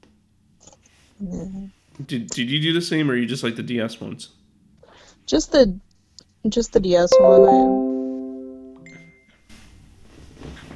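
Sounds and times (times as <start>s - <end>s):
speech: 1.2s - 4.4s, 5.3s - 7.8s
phone and laptop notification chimes: 7.1s - 9.1s.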